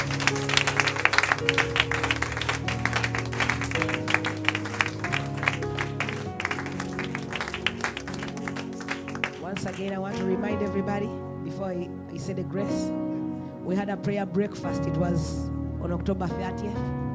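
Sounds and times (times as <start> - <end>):
audience clapping hands: 0.0 - 10.6
speech: 9.8 - 17.0.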